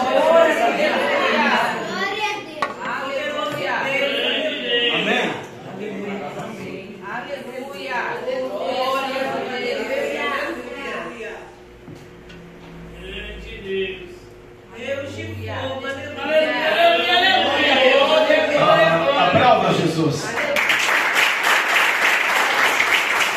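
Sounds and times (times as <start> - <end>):
people talking during a church service: 0.0 - 11.7, 12.4 - 20.6
applause for Jesus during a church service: 20.2 - 23.3.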